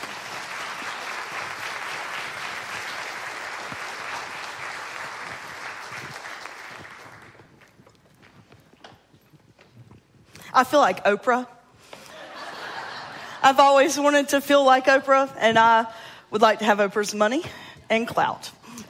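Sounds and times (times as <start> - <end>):
audience applauding to welcome professional guests: 0.0 - 7.8
speech: 10.6 - 11.5, 13.5 - 18.6.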